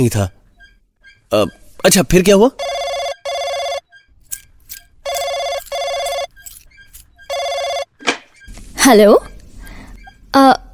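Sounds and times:
speech: 0:00.0 - 0:00.4, 0:01.3 - 0:02.7, 0:08.9 - 0:09.3, 0:10.3 - 0:10.6
telephone ringing: 0:02.5 - 0:04.2, 0:05.0 - 0:06.4, 0:07.2 - 0:08.6.

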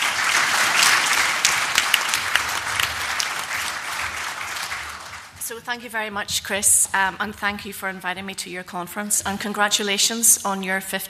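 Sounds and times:
audience applause greeting a speaker at a special-schools conference: 0:00.0 - 0:05.4
sharper claps: 0:00.0 - 0:05.4
speech: 0:05.5 - 0:11.0.

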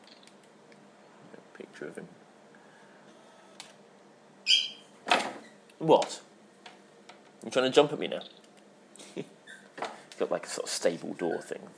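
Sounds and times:
speech: 0:01.6 - 0:02.3, 0:05.8 - 0:06.3, 0:07.4 - 0:08.4, 0:09.2 - 0:09.4, 0:10.2 - 0:11.7
small dog squeaking: 0:04.5 - 0:04.9, 0:09.4 - 0:09.7.

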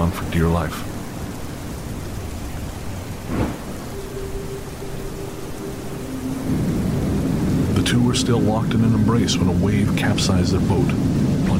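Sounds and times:
heavy rain: 0:00.0 - 0:11.5
low thunder rumbling: 0:00.0 - 0:11.5
speech: 0:00.4 - 0:00.9, 0:08.2 - 0:11.2
sharp crack: 0:03.2 - 0:03.8.

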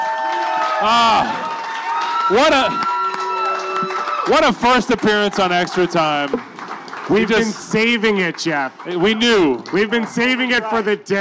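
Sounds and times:
bright whooping: 0:00.0 - 0:04.3
crowd cheering and applause: 0:00.0 - 0:11.0
speech: 0:00.8 - 0:01.5, 0:02.3 - 0:02.9, 0:03.8 - 0:06.5, 0:07.1 - 0:11.1.

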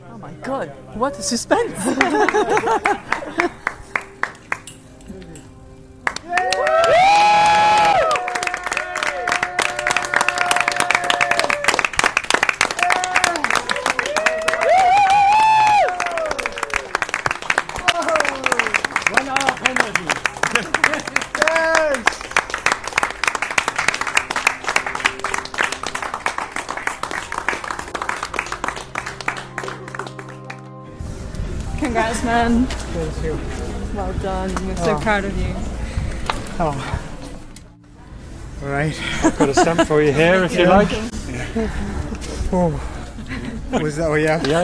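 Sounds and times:
speech: 0:00.2 - 0:03.7, 0:32.4 - 0:33.6, 0:34.2 - 0:35.6, 0:36.6 - 0:37.0, 0:38.8 - 0:41.9, 0:42.5 - 0:42.9, 0:43.7 - 0:44.6
laughter: 0:01.6 - 0:03.8, 0:17.7 - 0:22.1, 0:39.0 - 0:42.3, 0:43.0 - 0:44.6
crowd applause at a finish line: 0:01.7 - 0:04.7, 0:06.0 - 0:32.0
crowd cheering and whooping at a finish line: 0:06.2 - 0:18.9.

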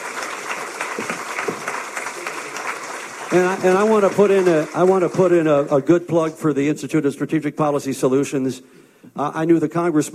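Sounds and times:
audience round of applause: 0:00.0 - 0:06.5
speech: 0:03.3 - 0:10.1.

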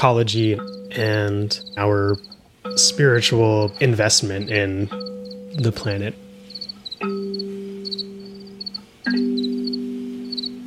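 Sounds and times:
speech: 0:00.0 - 0:06.2
crickets chirping: 0:00.0 - 0:10.6
deep resonant tones ringing: 0:00.0 - 0:10.6.

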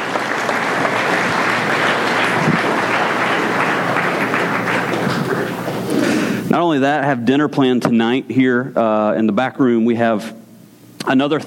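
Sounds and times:
round of applause: 0:00.0 - 0:05.9
speech: 0:06.6 - 0:10.4, 0:11.0 - 0:11.4.

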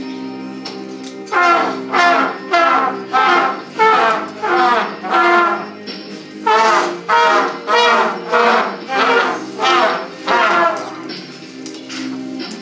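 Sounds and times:
class performance chant: 0:01.3 - 0:05.7, 0:06.5 - 0:11.0.

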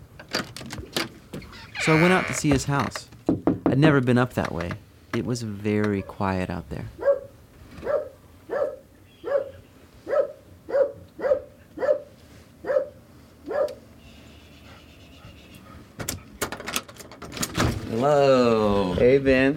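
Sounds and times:
speech: 0:01.8 - 0:03.1, 0:03.7 - 0:07.0, 0:18.0 - 0:19.5
dog barking: 0:07.0 - 0:13.8.

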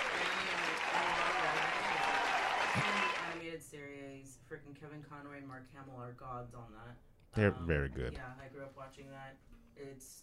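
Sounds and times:
audience applause: 0:00.0 - 0:03.4
speech: 0:03.6 - 0:10.2.

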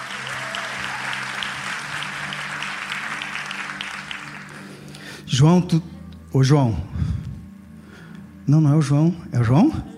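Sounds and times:
audience applause: 0:00.0 - 0:04.9
speech: 0:05.3 - 0:06.9, 0:08.5 - 0:09.9.

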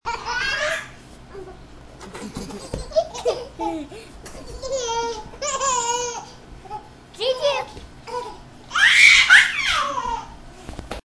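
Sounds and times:
babies laughing while playing: 0:00.1 - 0:06.4, 0:08.1 - 0:10.4.

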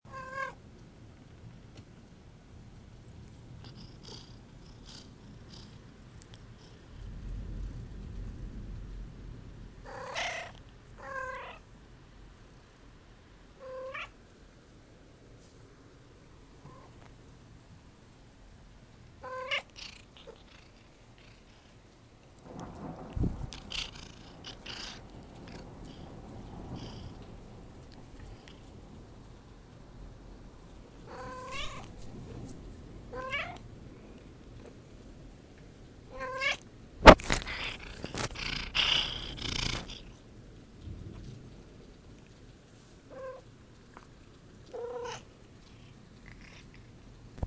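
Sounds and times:
cat: 0:00.1 - 0:00.6, 0:09.8 - 0:11.7, 0:13.6 - 0:14.2, 0:16.6 - 0:17.0, 0:19.2 - 0:21.7, 0:23.5 - 0:26.1, 0:31.1 - 0:32.0, 0:33.2 - 0:33.6, 0:36.1 - 0:40.2, 0:43.1 - 0:46.9
thunderstorm: 0:06.6 - 0:11.4, 0:22.2 - 0:43.9.

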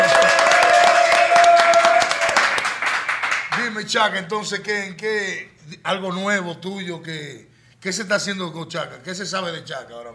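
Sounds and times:
audience applause: 0:00.0 - 0:03.6
speech: 0:03.9 - 0:10.1.

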